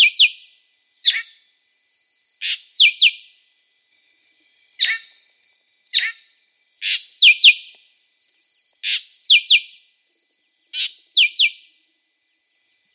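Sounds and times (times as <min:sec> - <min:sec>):
drongo singing harsh buzzy notes and double chips: 0:00.0 - 0:01.4, 0:02.4 - 0:05.2, 0:05.8 - 0:07.8, 0:08.8 - 0:09.9.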